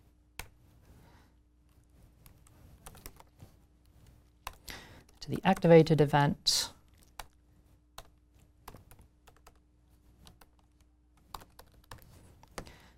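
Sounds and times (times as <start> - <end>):
typing on a computer keyboard: 2.3 - 3.3, 4.4 - 5.6, 8.0 - 9.6, 10.2 - 12.7
speech: 5.3 - 6.7.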